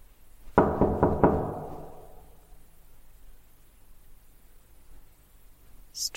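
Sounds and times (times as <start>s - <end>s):
knocking on a wooden apartment door: 0.6s - 2.4s.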